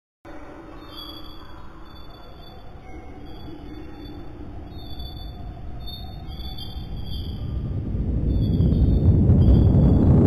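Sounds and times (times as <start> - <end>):
signal sound: 0.3 - 10.1.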